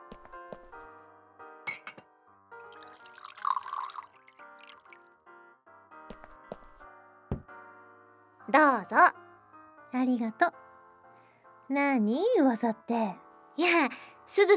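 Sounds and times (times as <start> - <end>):
water poured into a glass: 2.6 - 5.2
speech: 8.5 - 9.2, 9.9 - 10.6, 11.7 - 14.5.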